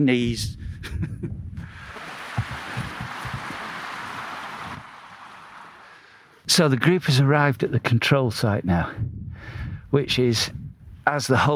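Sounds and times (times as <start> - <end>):
speech: 0.0 - 1.4, 6.6 - 11.5
wind blowing across an open peat bog plateau: 0.4 - 6.2, 8.8 - 11.1.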